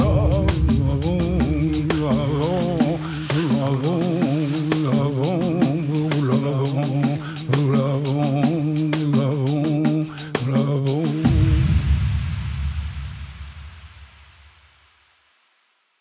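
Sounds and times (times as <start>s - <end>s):
wind: 0.0s - 8.2s, 11.0s - 14.8s
tambourine: 0.0s - 14.4s.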